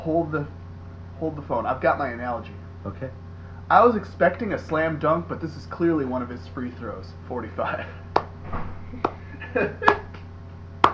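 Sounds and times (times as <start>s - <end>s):
speech: 0.0s - 0.6s, 1.2s - 8.1s, 8.9s - 10.1s
hand clap: 8.2s - 8.4s, 9.0s - 10.9s.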